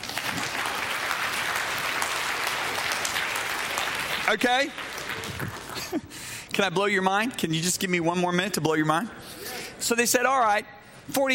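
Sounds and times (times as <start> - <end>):
audience clapping: 0.0 - 6.1
speech: 4.3 - 11.3.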